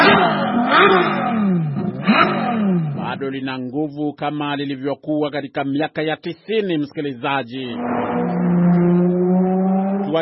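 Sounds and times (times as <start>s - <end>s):
engine revving of a car built between 1994 and 1996: 0.0s - 3.2s, 7.6s - 10.2s
speech: 3.2s - 8.4s.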